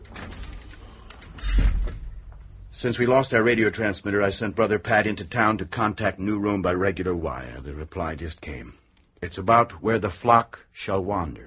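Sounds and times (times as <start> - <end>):
door being shut in an abbot's office: 1.4 - 2.5
speech: 2.8 - 11.4.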